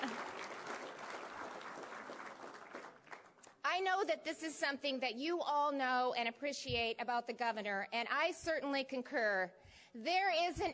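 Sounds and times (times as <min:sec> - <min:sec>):
audience applause: 0:00.0 - 0:03.4
speech: 0:03.8 - 0:10.7.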